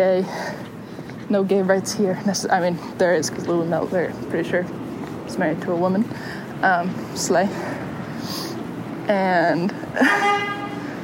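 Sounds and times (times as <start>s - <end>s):
speech: 0.0s - 0.7s, 1.3s - 8.5s, 9.1s - 10.6s
truck horn: 10.0s - 11.0s.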